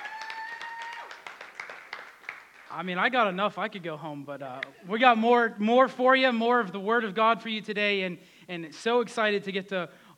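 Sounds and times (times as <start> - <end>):
church congregation clapping: 0.0 - 3.0
speech: 2.7 - 10.1.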